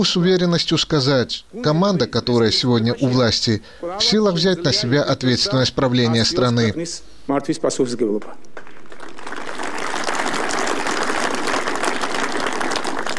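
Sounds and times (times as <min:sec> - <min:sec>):
speech: 0:00.0 - 0:08.6
applause interrupting a speech: 0:08.2 - 0:13.1.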